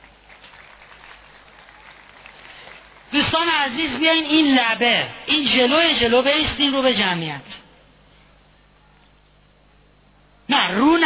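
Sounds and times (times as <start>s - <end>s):
audience applause: 0.0s - 3.7s
speech: 3.3s - 7.6s.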